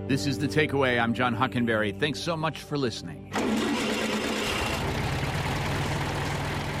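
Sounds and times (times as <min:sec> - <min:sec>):
speech: 0:00.1 - 0:03.6
1963 Volkswagen Beetle 1200cc air-cooled engine idling: 0:03.3 - 0:06.7.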